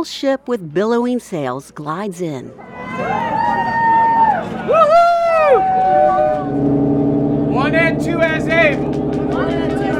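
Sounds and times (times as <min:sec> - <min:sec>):
speech: 0:00.0 - 0:03.6, 0:07.6 - 0:09.8
excited crowd cheering as ship arrives: 0:02.6 - 0:09.9.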